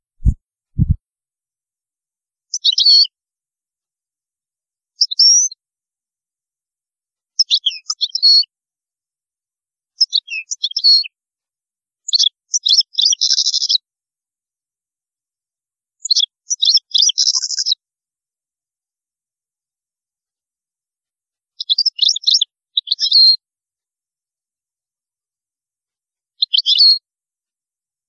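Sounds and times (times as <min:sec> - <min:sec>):
European goldfinch song: 0:02.5 - 0:03.1, 0:04.9 - 0:05.6, 0:07.4 - 0:08.5, 0:09.9 - 0:11.2, 0:12.0 - 0:13.8, 0:16.0 - 0:17.8, 0:21.6 - 0:23.4, 0:26.4 - 0:27.0.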